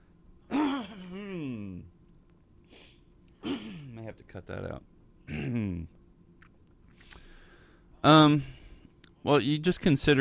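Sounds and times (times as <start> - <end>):
person coughing and groaning: 0.4 - 1.8, 3.4 - 4.0, 5.2 - 5.9
speech: 4.3 - 6.0, 8.0 - 8.6, 9.2 - 10.1.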